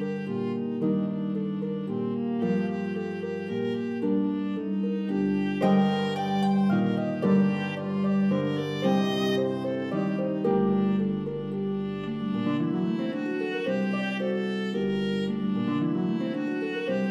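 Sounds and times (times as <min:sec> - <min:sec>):
viola playing: 0:00.0 - 0:17.0.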